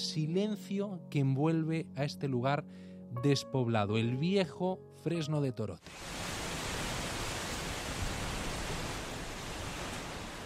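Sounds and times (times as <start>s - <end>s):
speech: 0.2s - 6.2s
wind rustling tree leaves: 5.8s - 10.4s.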